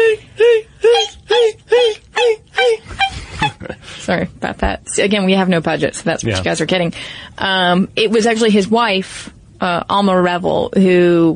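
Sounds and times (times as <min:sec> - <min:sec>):
person imitating high-pitched violin screams: 0:00.0 - 0:03.6
speech: 0:05.0 - 0:11.3.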